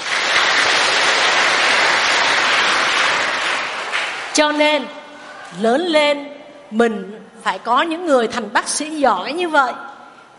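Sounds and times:
children applauding: 0:00.0 - 0:04.6
speech: 0:04.4 - 0:10.3.

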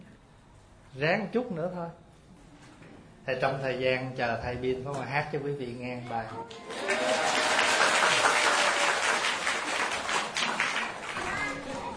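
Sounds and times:
speech: 0:01.0 - 0:02.0, 0:03.2 - 0:07.2
audience applause at a Vietnamese-language gathering: 0:06.5 - 0:11.5.

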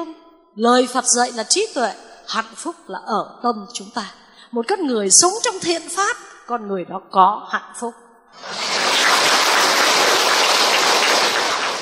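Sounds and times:
speech: 0:00.6 - 0:08.7
audience applause at a Buddhist dharma talk: 0:08.4 - 0:11.8.

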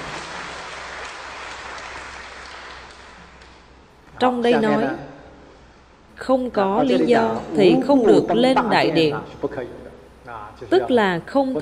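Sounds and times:
audience applauding during a lecture: 0:00.0 - 0:03.8
speech: 0:04.2 - 0:05.1, 0:06.2 - 0:11.6.

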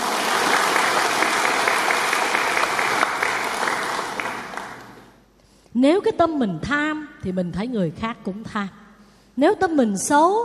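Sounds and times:
audience applause: 0:00.0 - 0:05.1
speech: 0:05.8 - 0:08.8, 0:09.4 - 0:10.4.

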